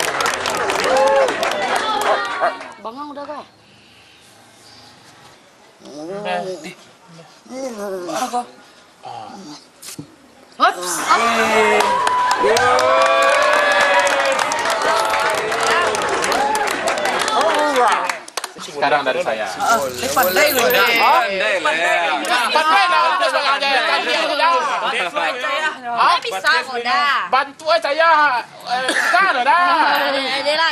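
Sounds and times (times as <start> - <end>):
audience cheering: 0.0 - 2.4, 11.0 - 18.0
audience applause: 0.0 - 2.6, 11.7 - 18.5
speech: 2.8 - 3.6, 5.8 - 13.2, 18.7 - 30.7.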